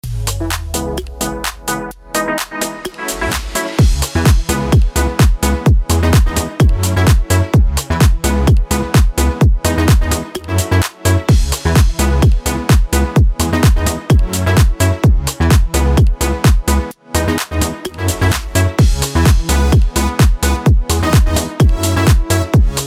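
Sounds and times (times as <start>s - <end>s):
house music bed: 0.0s - 22.8s.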